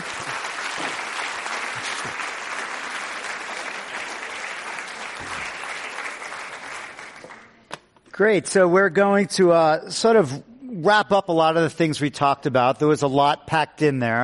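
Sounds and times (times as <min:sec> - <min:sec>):
crowd applauding: 0:00.0 - 0:07.6
speech: 0:08.2 - 0:14.2.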